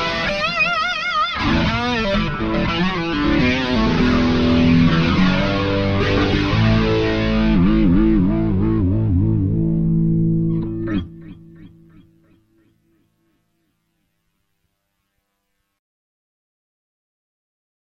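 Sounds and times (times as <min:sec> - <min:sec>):
electric guitar through chorus, tri lag delay and blues driver effects: 0:00.0 - 0:14.0.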